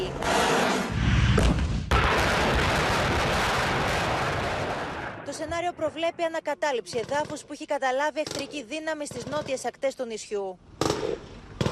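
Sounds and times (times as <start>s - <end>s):
military exercise artillery fire: 0.2s - 5.5s, 10.8s - 11.7s
speech: 1.4s - 1.6s, 5.4s - 11.3s.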